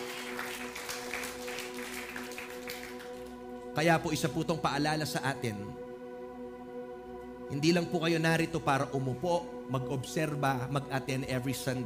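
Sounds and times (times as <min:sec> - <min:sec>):
church congregation applauding: 0:00.0 - 0:03.7
speech: 0:03.8 - 0:05.8, 0:07.5 - 0:11.8.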